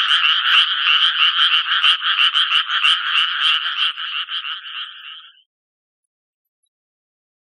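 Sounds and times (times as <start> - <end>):
Japanese tree frog croaking: 0.0 - 5.4.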